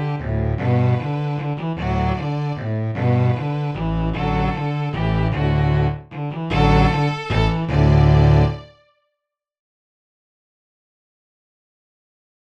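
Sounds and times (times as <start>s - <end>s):
folk quartet playing: 0.0s - 8.8s.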